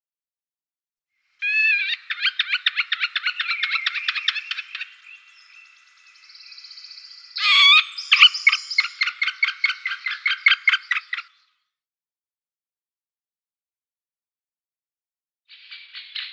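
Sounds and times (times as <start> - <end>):
Middle Spotted Woodpecker harsh nasal squawks: 1.4 - 5.0, 7.4 - 11.3.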